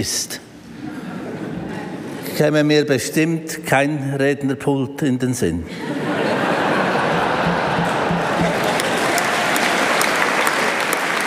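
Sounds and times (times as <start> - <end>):
speech: 0.0 - 0.4, 2.4 - 6.1
laughter: 0.8 - 2.2, 5.6 - 10.3
sustained applause: 6.9 - 11.2.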